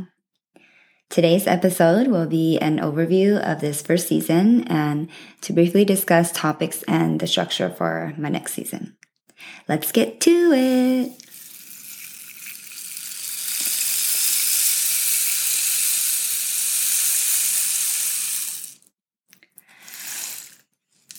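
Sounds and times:
speech: 1.1s - 11.2s
rain stick transition sound: 10.6s - 18.8s, 19.8s - 21.1s.

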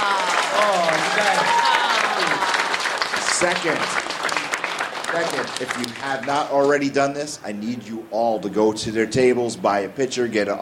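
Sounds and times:
audience applause: 0.0s - 6.5s
speech: 1.2s - 1.8s, 3.4s - 4.2s, 5.1s - 10.6s.

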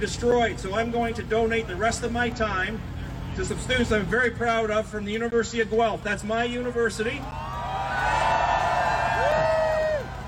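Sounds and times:
speech: 0.0s - 7.5s
crowd cheering: 7.2s - 10.2s.

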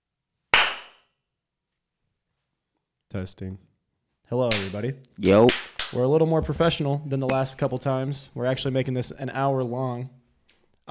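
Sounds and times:
single hand clap for audio sync: 0.5s - 1.1s, 4.5s - 4.8s, 5.4s - 6.0s
speech: 3.1s - 3.7s, 4.3s - 10.2s.

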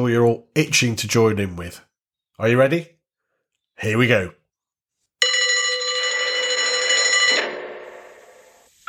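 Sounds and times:
speech: 0.0s - 3.0s, 3.8s - 4.4s
fire station alarm bell ringing: 5.2s - 8.5s.

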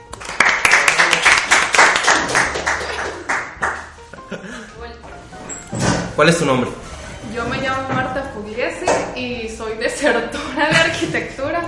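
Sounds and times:
audience applause: 0.2s - 3.9s
speech: 6.2s - 11.6s.

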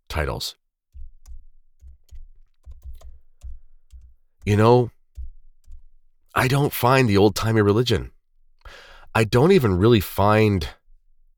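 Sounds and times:
speech: 0.2s - 0.6s, 4.5s - 5.0s, 6.4s - 10.8s
typing on a computer keyboard: 0.9s - 6.0s.

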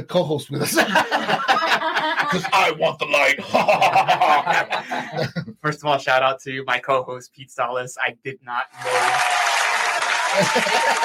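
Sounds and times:
speech: 0.0s - 9.5s, 10.3s - 11.0s
laughter: 0.6s - 5.6s, 8.8s - 11.0s
applause: 8.8s - 11.0s.

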